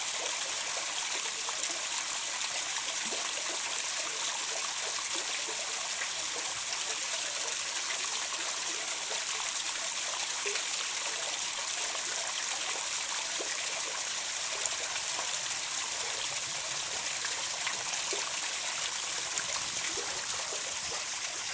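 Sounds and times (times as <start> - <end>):
water burbling in a grotto at Osage Hills: 0.0 - 21.5.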